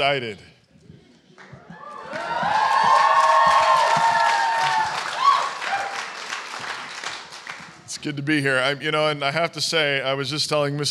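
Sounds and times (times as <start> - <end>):
speech: 0.0 - 0.5, 8.0 - 10.8
crowd applauding to welcome a speaker: 1.4 - 8.0
people whooping and shouting: 1.6 - 6.2.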